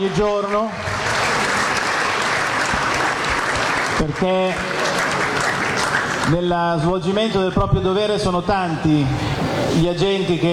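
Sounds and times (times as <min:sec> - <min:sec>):
speech: 0:00.0 - 0:01.0, 0:04.0 - 0:04.8, 0:06.3 - 0:10.5
audience applause welcoming the police forces at a commemoration: 0:00.0 - 0:06.8.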